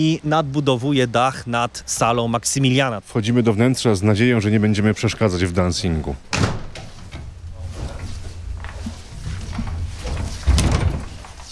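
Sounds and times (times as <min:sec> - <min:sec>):
speech: 0:00.0 - 0:06.5
old wooden revolving entrance door of an early-1900s spa house turning: 0:06.2 - 0:11.5.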